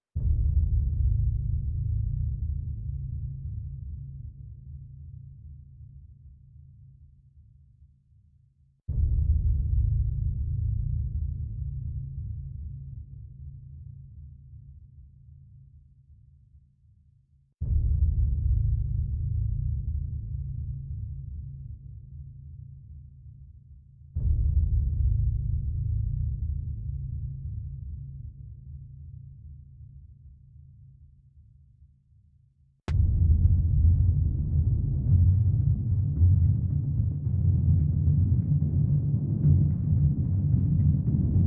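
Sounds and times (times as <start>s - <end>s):
drums mix: 0.1s - 4.0s, 8.9s - 13.0s, 17.6s - 21.7s, 24.2s - 28.3s, 32.9s - 41.4s.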